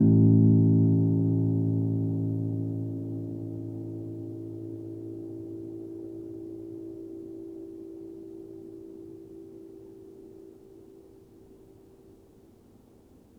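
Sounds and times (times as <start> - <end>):
upright piano: 0.0 - 7.9.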